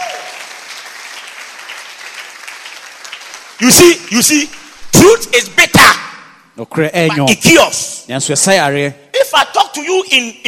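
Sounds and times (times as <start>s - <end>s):
audience applause: 0.0s - 4.4s
speech: 3.6s - 6.0s, 6.6s - 10.4s.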